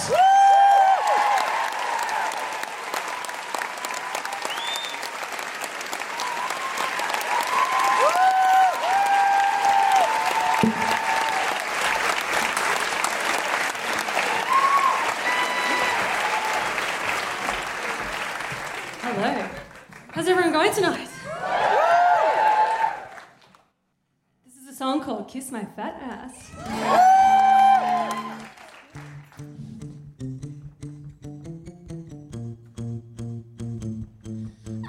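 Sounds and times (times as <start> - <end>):
audience applause and cheering welcoming two band members: 0.1 - 20.1, 21.2 - 23.5, 26.5 - 29.6
audience whistles: 4.4 - 5.1.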